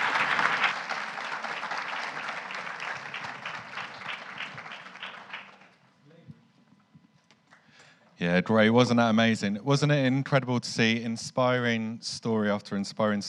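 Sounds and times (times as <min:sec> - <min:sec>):
round of applause: 0:00.0 - 0:05.8
speech: 0:08.2 - 0:13.2.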